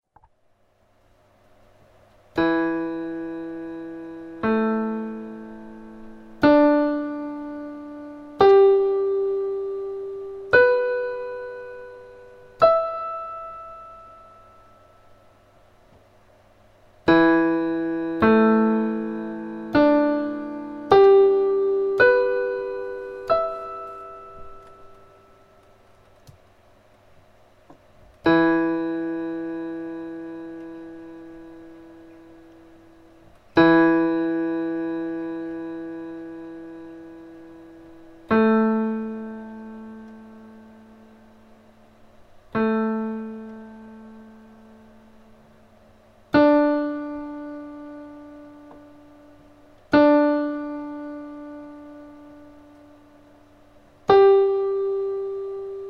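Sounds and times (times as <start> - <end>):
piano: 1.1 - 55.8.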